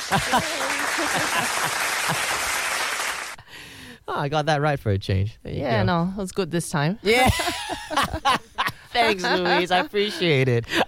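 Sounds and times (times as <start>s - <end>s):
laughter: 0.0s - 2.5s, 7.1s - 10.8s
applause: 0.0s - 3.4s
speech: 0.1s - 2.6s, 4.1s - 10.8s.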